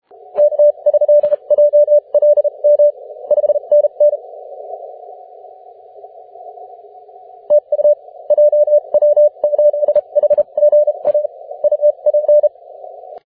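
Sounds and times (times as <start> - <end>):
20m band CW morse code tones: 0.4 - 4.2, 7.5 - 12.5.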